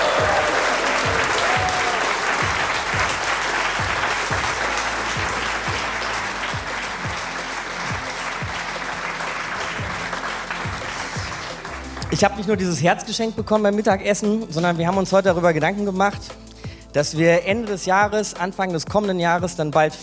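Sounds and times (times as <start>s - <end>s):
audience applause: 0.0s - 12.5s
speech: 12.2s - 20.0s.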